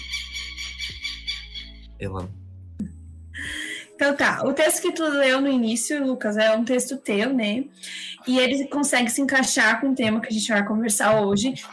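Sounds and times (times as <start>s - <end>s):
small bird chirping in the background: 0.0s - 1.9s
speech: 2.0s - 3.0s, 4.0s - 11.7s.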